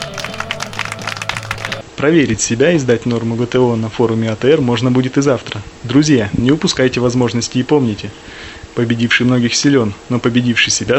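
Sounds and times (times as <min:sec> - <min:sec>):
audience applause: 0:00.0 - 0:01.8
speech: 0:02.0 - 0:10.9.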